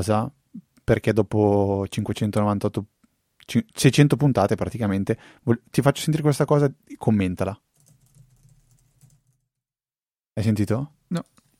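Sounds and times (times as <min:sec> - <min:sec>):
speech: 0:00.0 - 0:07.6, 0:10.4 - 0:11.5
quiet typing on a wireless computer keyboard: 0:07.7 - 0:09.5.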